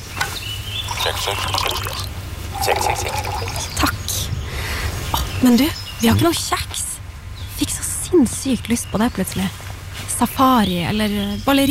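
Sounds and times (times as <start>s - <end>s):
low hum: 0.0s - 11.6s
coffee pouring into a cup: 0.8s - 3.8s
speech: 1.0s - 4.0s, 5.4s - 6.9s, 8.1s - 9.6s, 10.2s - 11.6s.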